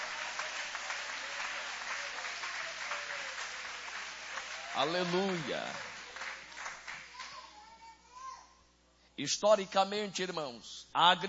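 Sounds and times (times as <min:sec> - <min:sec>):
audience applauding: 0:00.0 - 0:07.4
speech: 0:04.8 - 0:05.9, 0:09.2 - 0:11.2.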